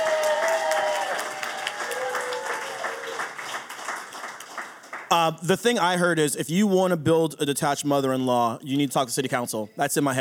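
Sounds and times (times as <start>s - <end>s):
audience applause: 0.0s - 5.1s
speech: 5.1s - 10.1s.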